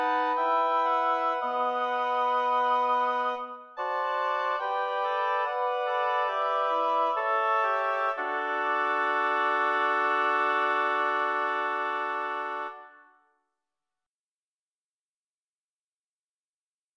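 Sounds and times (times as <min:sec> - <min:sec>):
lyrical oboe quartet: 0:00.0 - 0:13.1.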